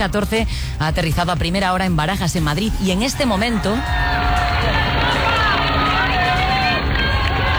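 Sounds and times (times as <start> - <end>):
speech: 0.0 - 4.8
live street crowd in Madrid cheering as Pope Leo XIV passes in the Popemobile: 2.6 - 7.5.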